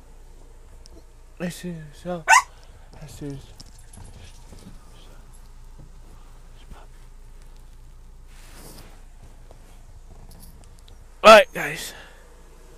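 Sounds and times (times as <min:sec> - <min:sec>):
speech: 0:01.4 - 0:02.4, 0:03.0 - 0:03.6, 0:11.3 - 0:12.0
faint dog barking and whimpering in the background: 0:02.2 - 0:02.6.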